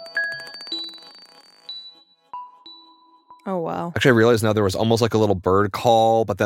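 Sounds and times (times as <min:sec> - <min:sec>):
glass marble bouncing with gravity: 0:00.0 - 0:02.0
ringing pings: 0:00.0 - 0:03.8
speech: 0:03.4 - 0:06.4.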